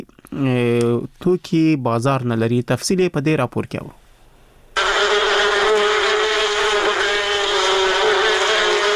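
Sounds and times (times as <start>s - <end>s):
speech: 0.3s - 4.0s
honey bees buzzing at a bee farm in Kunduz: 4.8s - 8.9s.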